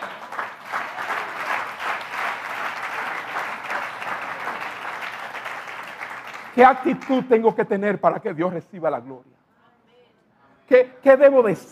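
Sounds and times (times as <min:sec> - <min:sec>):
audience applauding: 0:00.0 - 0:07.7
speech: 0:06.6 - 0:09.4, 0:10.7 - 0:11.7.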